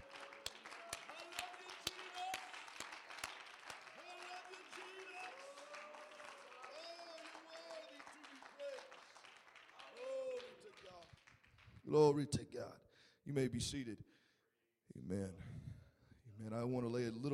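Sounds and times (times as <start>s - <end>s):
crowd clapping: 0.0s - 12.0s
speech: 11.9s - 14.1s, 15.1s - 15.5s, 16.4s - 17.3s.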